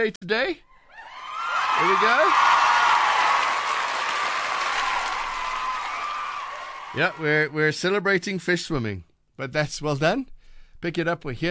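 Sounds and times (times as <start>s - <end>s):
speech: 0.0s - 0.7s, 1.8s - 2.6s, 6.9s - 11.4s
round of applause: 1.0s - 7.5s.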